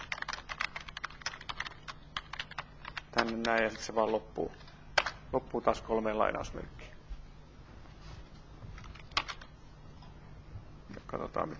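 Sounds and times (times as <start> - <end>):
rapid typing on a computer keyboard while writing code: 0.0 - 3.7, 8.9 - 9.5
speech: 3.2 - 4.7, 5.3 - 6.8, 11.1 - 11.5.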